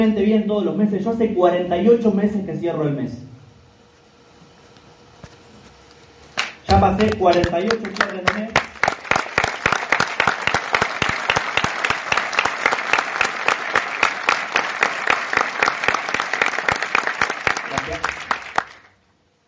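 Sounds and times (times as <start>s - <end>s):
speech: 0.0s - 3.3s, 6.7s - 8.7s
audience applause: 6.4s - 19.0s.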